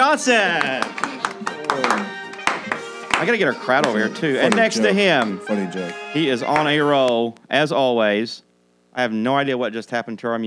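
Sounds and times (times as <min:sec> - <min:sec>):
speech: 0:00.0 - 0:01.0, 0:03.2 - 0:10.4
laughter: 0:00.0 - 0:07.2
scattered clapping from a small audience: 0:00.0 - 0:07.3
voices and cheering: 0:00.0 - 0:07.3.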